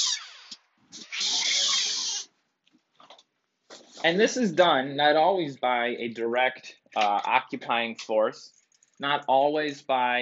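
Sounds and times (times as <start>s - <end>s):
store door opening with a screech: 0.0s - 2.3s
speech: 4.0s - 10.2s.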